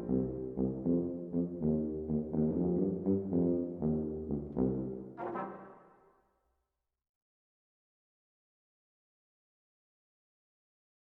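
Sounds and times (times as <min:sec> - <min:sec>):
brass ensembles playing medieval Christmas carols: 0:00.0 - 0:05.9.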